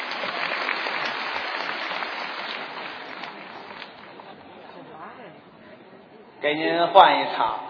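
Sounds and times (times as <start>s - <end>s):
crowd applauding: 0.0s - 4.7s
speech: 6.4s - 7.6s.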